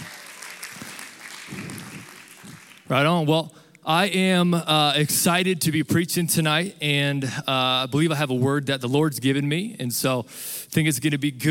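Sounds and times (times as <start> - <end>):
church audience applause at an evening service: 0.0 - 2.9
speech: 2.9 - 11.4.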